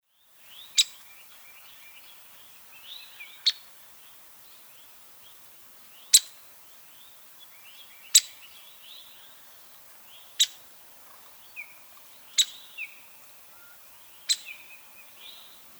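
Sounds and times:
downy woodpecker call notes: 0:00.6 - 0:01.1, 0:06.0 - 0:06.4, 0:08.0 - 0:08.5, 0:10.3 - 0:15.7.

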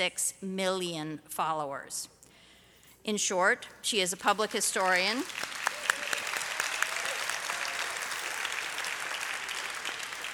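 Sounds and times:
speech: 0:00.0 - 0:02.2, 0:03.0 - 0:05.5
applause: 0:04.8 - 0:10.3.

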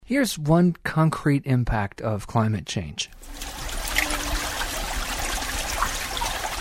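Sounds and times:
speech: 0:00.1 - 0:03.4
meltwater trickling from thawing permafrost: 0:03.2 - 0:06.5.

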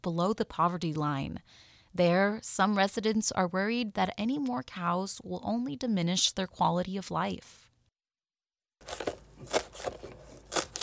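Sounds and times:
speech: 0:00.0 - 0:07.6, 0:08.8 - 0:09.9
knife chopping cilantro in a kitchen: 0:08.8 - 0:10.8.

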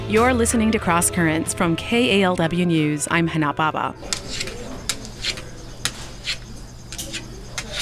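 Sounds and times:
speech: 0:00.1 - 0:04.4
Argus monitor lizard scratching a cage corner: 0:04.0 - 0:07.8.

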